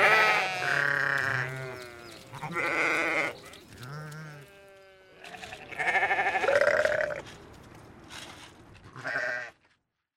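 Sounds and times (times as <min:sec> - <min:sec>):
sheep bleating: 0:00.0 - 0:07.2, 0:09.0 - 0:09.6.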